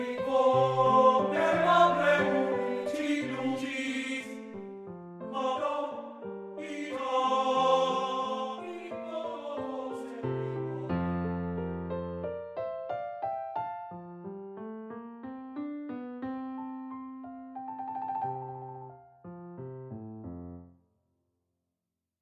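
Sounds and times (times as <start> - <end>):
voice singing: 0.0 - 4.4, 5.3 - 11.0
piano: 0.0 - 20.8.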